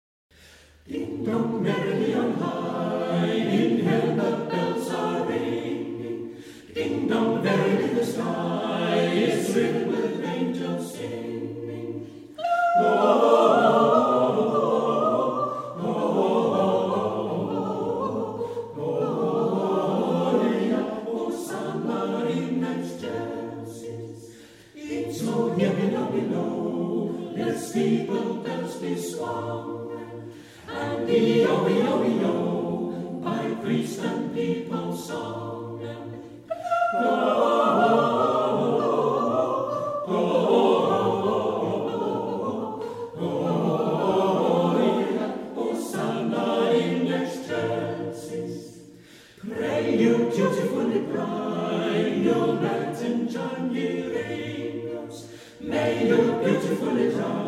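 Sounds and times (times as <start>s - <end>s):
Christmas carol: 0.4s - 57.4s.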